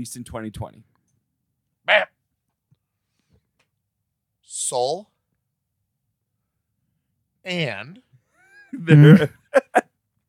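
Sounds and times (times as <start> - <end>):
speech: 0.0 - 0.9, 1.9 - 2.2, 4.5 - 5.1, 7.4 - 8.0, 8.7 - 9.4
laughter: 8.5 - 9.8
person blowing fart-like raspberry: 8.8 - 9.4
short sharp vocal bursts: 8.8 - 9.4.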